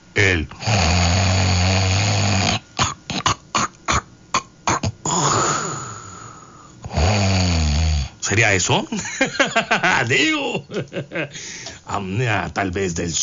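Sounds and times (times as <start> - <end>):
person snoring through an open microphone: 0.2 - 8.2
speech: 0.3 - 0.7, 8.3 - 13.2
laughter: 8.9 - 11.4.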